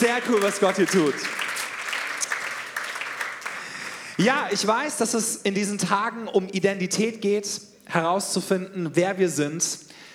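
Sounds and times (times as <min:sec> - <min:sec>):
speech: 0:00.0 - 0:01.5, 0:04.2 - 0:10.0
audience applause: 0:00.0 - 0:04.7.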